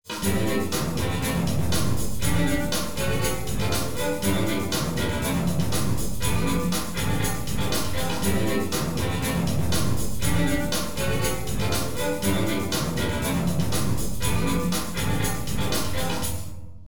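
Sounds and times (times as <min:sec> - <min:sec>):
groove: 0:00.0 - 0:16.6.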